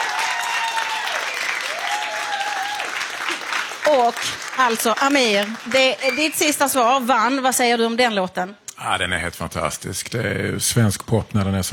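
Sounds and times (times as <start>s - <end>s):
audience applause: 0.0s - 6.6s
speech: 3.9s - 11.7s.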